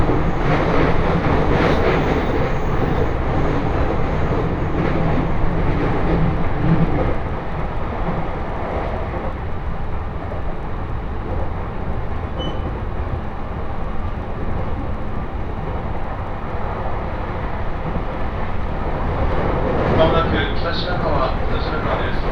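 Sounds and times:
Tohoku Main Line train carriage rumble: 0.0 - 22.2
faint voices: 19.9 - 22.2.

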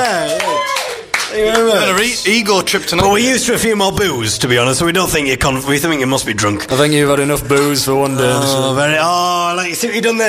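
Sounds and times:
audience clapping: 0.0 - 2.5
speech: 1.4 - 10.2.

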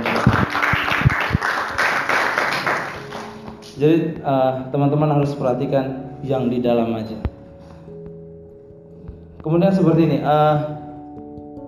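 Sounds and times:
audience clapping: 0.0 - 3.5
speech: 3.8 - 7.2, 9.4 - 10.8.

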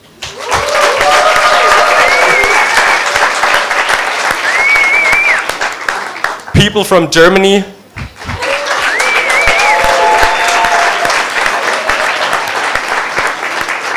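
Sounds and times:
cheers and whoops: 0.2 - 5.5, 8.3 - 12.8
crowd applause: 0.2 - 6.6, 8.1 - 13.9
speech: 6.7 - 7.8.

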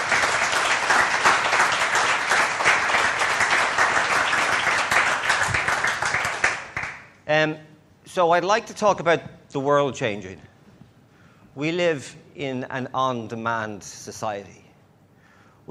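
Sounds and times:
round of applause: 0.0 - 7.1
speech: 7.3 - 10.5, 11.6 - 14.6.

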